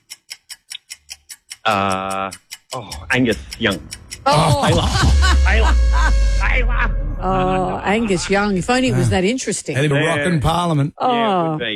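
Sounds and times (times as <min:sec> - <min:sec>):
clock ticking: 0:00.0 - 0:10.6
speech: 0:01.6 - 0:11.7
laughter: 0:03.1 - 0:11.5.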